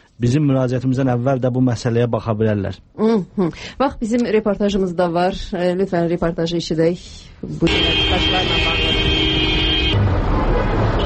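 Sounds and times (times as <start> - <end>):
speech: 0.2 - 8.8
traffic rumble: 3.1 - 11.0
car horn honking in a long line of cars on a street: 7.6 - 11.0.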